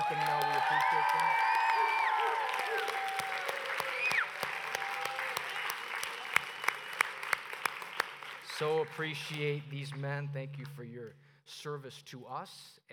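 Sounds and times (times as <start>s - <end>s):
audience applause: 0.0s - 9.1s
whistles: 3.9s - 4.4s, 5.5s - 7.0s
speech: 8.6s - 12.9s.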